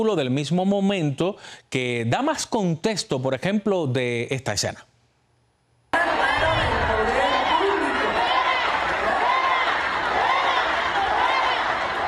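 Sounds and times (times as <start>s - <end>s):
speech: 0.0s - 4.9s
crowd shouting at a protester: 6.0s - 12.0s.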